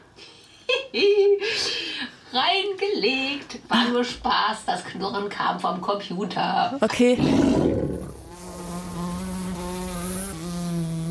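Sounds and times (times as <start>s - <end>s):
speech: 0.9s - 1.2s, 2.3s - 7.9s
blowfly buzzing: 7.2s - 11.0s.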